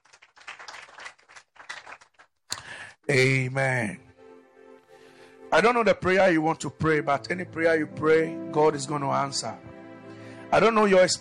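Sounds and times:
audience clapping: 0.0 - 3.0
speech: 3.1 - 4.1, 5.5 - 9.7, 10.5 - 11.1.

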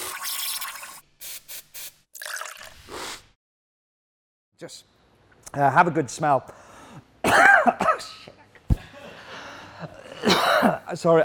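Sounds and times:
speech: 4.6 - 8.2, 10.9 - 11.2
coughing after getting coffee up the nose and into the throat: 7.2 - 8.9, 10.0 - 10.9.

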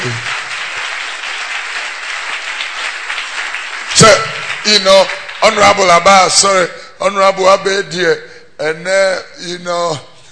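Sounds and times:
audience clapping: 0.0 - 6.2
speech: 4.0 - 10.1.

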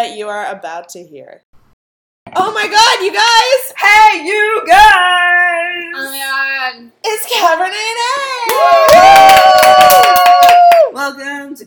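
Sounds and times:
speech: 0.0 - 1.6, 2.3 - 10.2, 10.9 - 11.6
audience clapping and cheering: 8.4 - 11.0
long high steady whoop: 8.4 - 11.0.

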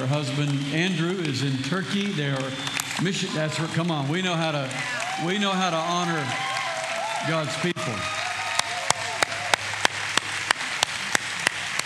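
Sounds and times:
audience clapping in steady unison: 0.0 - 11.8
crowd noise: 0.0 - 11.8
speech: 0.1 - 6.6, 7.2 - 8.2.

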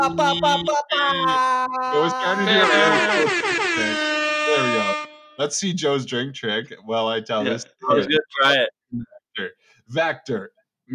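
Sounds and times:
speech: 0.0 - 10.9
air horn sound effect: 0.1 - 5.5.

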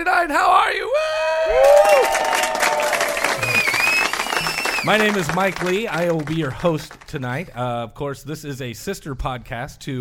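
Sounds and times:
speech: 0.0 - 0.7, 4.8 - 9.9
crowd cheering and clapping: 1.3 - 7.6
whoops and high whistles: 1.4 - 4.9.

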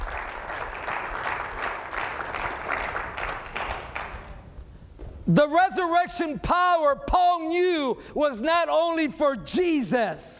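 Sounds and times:
audience clapping applause: 0.0 - 4.7
speech: 5.3 - 10.3.

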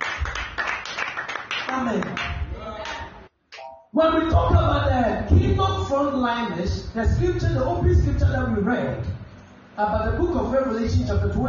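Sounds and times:
audience clapping hands: 0.0 - 3.2
speech: 1.7 - 2.4, 3.9 - 9.2, 9.8 - 11.4.

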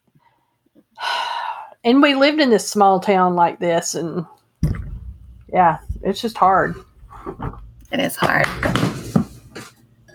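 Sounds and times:
speech: 1.8 - 4.4, 5.5 - 8.8
soft rattling knock: 4.6 - 9.6
lotion bottle knocked over: 4.6 - 9.7.

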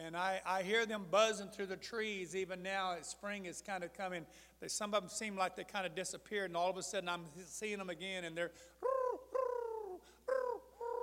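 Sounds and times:
speech: 0.0 - 8.8
bird cooing: 8.8 - 11.0.

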